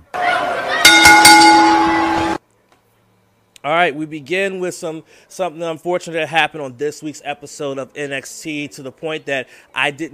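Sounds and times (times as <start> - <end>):
wrestling ring bell being rung: 0.8 - 2.4
speech: 3.8 - 10.1.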